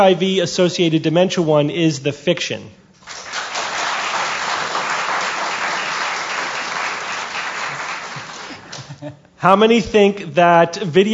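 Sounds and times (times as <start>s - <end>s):
speech: 0.0s - 3.2s, 9.0s - 11.1s
audience applause cast as a vote: 3.0s - 8.8s.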